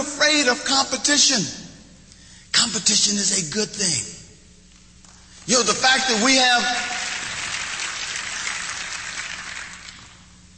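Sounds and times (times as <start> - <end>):
speech: 0.3 - 1.6, 2.5 - 4.2, 5.5 - 6.9
audience applause: 6.6 - 10.2.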